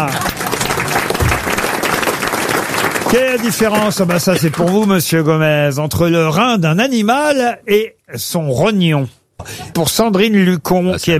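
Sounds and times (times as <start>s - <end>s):
audience applause: 0.0s - 5.0s
speech: 3.1s - 11.1s.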